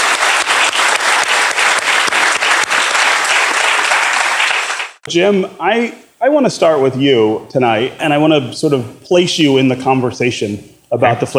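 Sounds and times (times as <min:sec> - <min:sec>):
audience applause: 0:00.0 - 0:05.0
speech: 0:05.1 - 0:11.3.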